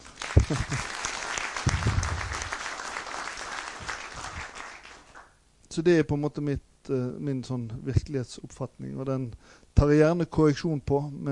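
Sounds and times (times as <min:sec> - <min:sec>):
audience applause: 0:00.0 - 0:05.3
speech: 0:00.5 - 0:00.9, 0:05.8 - 0:11.2.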